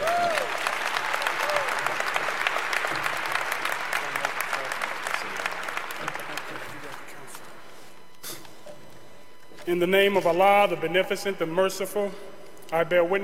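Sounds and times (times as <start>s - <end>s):
audience applause from a large crowd: 0.0s - 7.4s
speech: 9.7s - 13.2s.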